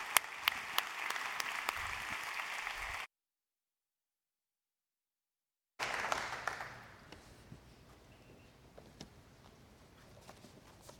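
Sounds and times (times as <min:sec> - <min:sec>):
applause welcoming a preacher to the pulpit at a church service: 0:00.0 - 0:03.1, 0:05.8 - 0:07.1.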